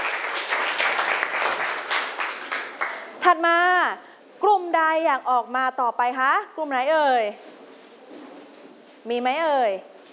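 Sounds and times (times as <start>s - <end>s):
classroom applause: 0.0s - 3.2s
speech: 3.3s - 4.1s, 5.0s - 7.5s, 9.0s - 9.9s.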